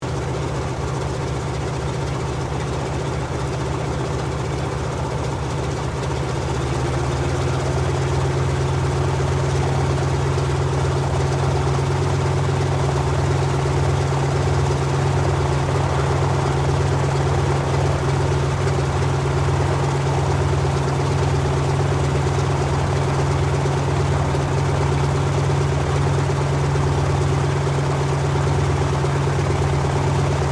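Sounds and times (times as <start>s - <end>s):
Lockheed Hudson twin engine light bomber warming up: 0.0s - 30.5s.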